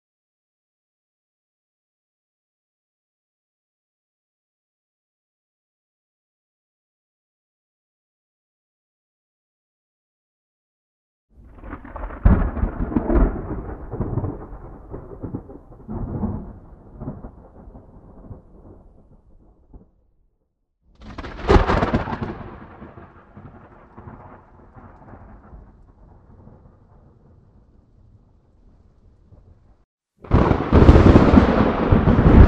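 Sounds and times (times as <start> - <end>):
thunder on an island: 11.4 - 20.0, 21.0 - 32.4.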